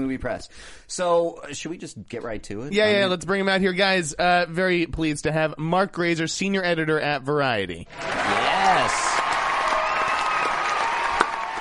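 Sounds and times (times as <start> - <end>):
speech: 0.0 - 9.2
canned applause: 7.9 - 11.5.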